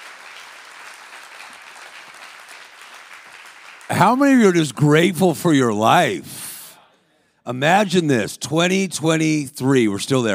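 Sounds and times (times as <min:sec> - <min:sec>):
audience clapping: 0:00.0 - 0:05.1
speech: 0:03.9 - 0:06.4, 0:07.4 - 0:10.3.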